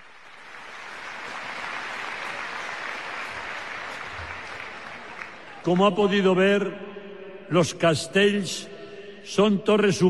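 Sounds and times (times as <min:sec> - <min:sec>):
large crowd applauding the castellers of Vilafranca del Penedès: 0:00.0 - 0:06.2
speech: 0:05.6 - 0:10.0.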